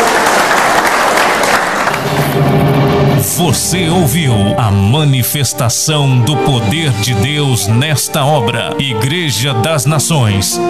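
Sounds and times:
audience applauding: 0.0s - 2.6s
speech: 3.4s - 10.6s.

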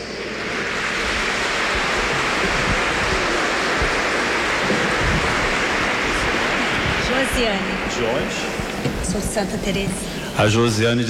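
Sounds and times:
audience applause: 0.0s - 11.0s
speech: 7.2s - 11.0s.

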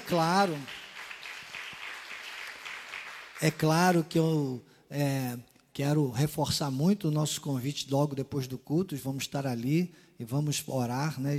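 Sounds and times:
church congregation applauding during a worship service: 0.0s - 4.2s
speech: 0.1s - 0.8s, 3.4s - 11.3s.

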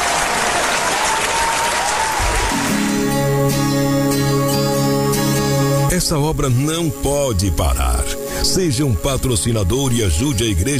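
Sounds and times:
audience applauding loudly: 0.0s - 3.5s
sustained musical tones: 2.5s - 10.7s
speech: 6.0s - 10.7s.

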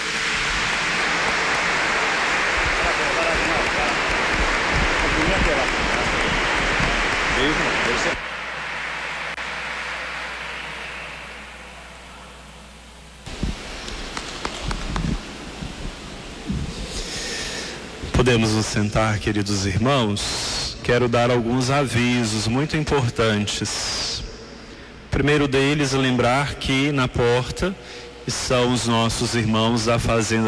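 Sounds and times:
audience applause: 0.0s - 12.2s, 13.3s - 16.2s
speech: 7.4s - 8.3s, 18.3s - 24.2s, 25.2s - 30.4s.

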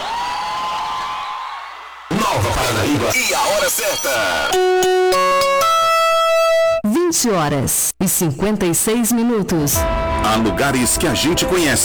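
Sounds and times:
cheering with sustained high whoop: 0.0s - 2.2s
applause: 0.0s - 2.3s
speech: 2.5s - 5.8s, 7.1s - 11.8s.

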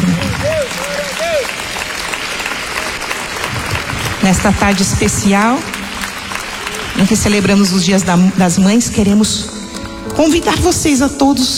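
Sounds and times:
audience applause: 0.0s - 10.8s
speech: 4.2s - 5.8s, 7.0s - 9.6s, 10.2s - 11.5s
tonal sweep: 5.2s - 11.5s.

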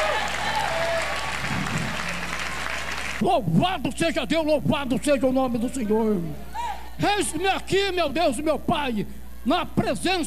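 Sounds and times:
audience applauding: 0.0s - 3.2s
speech: 3.2s - 10.2s.

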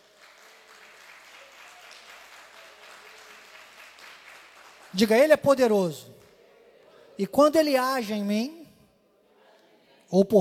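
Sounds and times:
audience applauding: 0.0s - 6.3s
speech: 4.9s - 6.1s, 7.2s - 8.6s, 10.1s - 10.3s.

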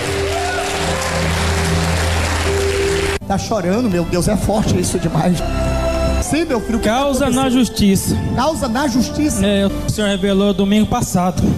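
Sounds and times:
audience applauding loudly: 0.0s - 3.2s
speech: 3.3s - 5.7s, 6.3s - 11.5s.

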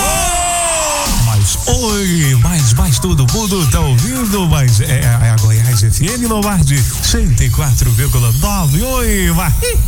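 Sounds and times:
person shouting on request on a radio station: 0.0s - 1.3s, 9.6s - 9.8s
speech: 1.8s - 9.8s.

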